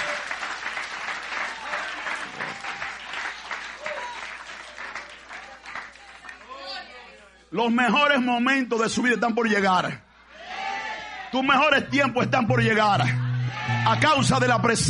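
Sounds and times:
applause: 0:00.0 - 0:06.9
speech: 0:07.5 - 0:10.0, 0:11.3 - 0:13.2, 0:13.8 - 0:14.8.

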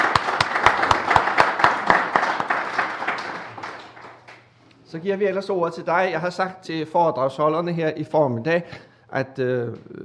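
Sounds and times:
round of applause: 0:00.0 - 0:04.5
speech: 0:04.9 - 0:10.0.

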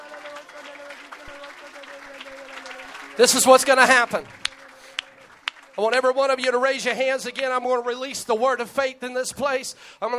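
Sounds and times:
audience clapping hands: 0:00.0 - 0:07.7
speech: 0:03.2 - 0:04.4, 0:05.8 - 0:10.1.

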